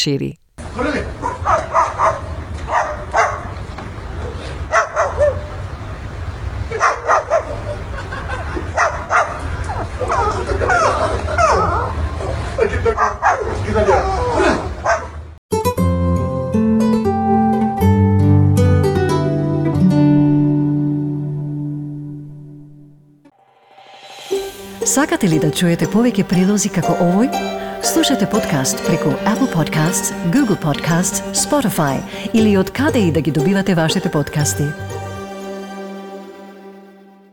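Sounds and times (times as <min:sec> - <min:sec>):
speech: 0:00.0 - 0:01.2, 0:12.8 - 0:14.6, 0:25.0 - 0:35.0
cockatoo imitating the family dog with bark-like yelps and whimpers: 0:01.0 - 0:03.5, 0:04.2 - 0:05.5, 0:08.8 - 0:15.2
laughter: 0:07.4 - 0:13.0
music: 0:15.5 - 0:37.3.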